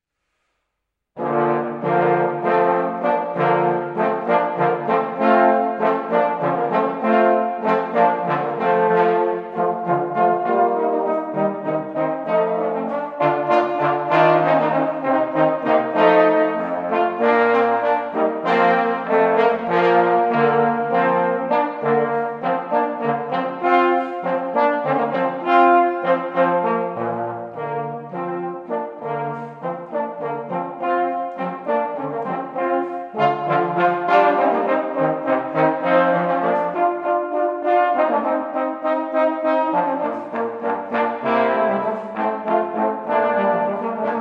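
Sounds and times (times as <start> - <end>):
trombone trio: 1.2 - 44.1.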